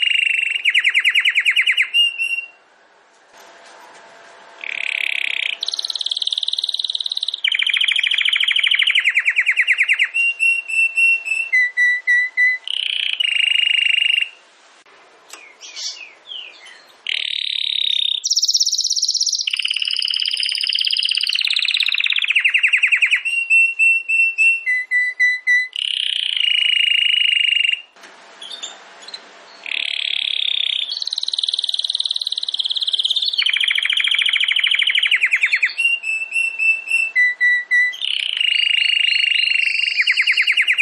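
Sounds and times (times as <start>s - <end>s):
domestic canary singing: 0.0s - 2.6s, 4.6s - 14.4s, 15.3s - 40.7s.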